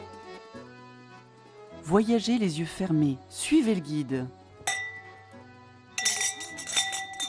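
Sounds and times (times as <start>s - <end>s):
speech: 1.9s - 4.4s
wind chimes ringing: 4.7s - 7.2s.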